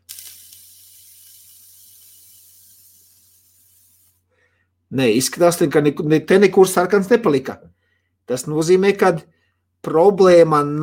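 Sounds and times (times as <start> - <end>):
vape vapor being blown out: 0.0 - 4.3
speech: 4.9 - 10.8.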